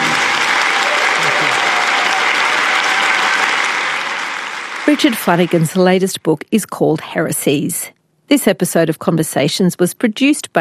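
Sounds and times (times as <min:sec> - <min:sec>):
audience applause: 0:00.0 - 0:06.0
speech: 0:04.9 - 0:10.5.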